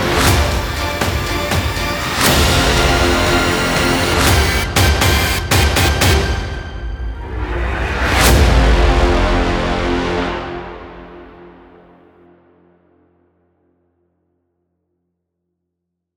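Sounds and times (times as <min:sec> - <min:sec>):
heroic music: 0:00.0 - 0:12.2.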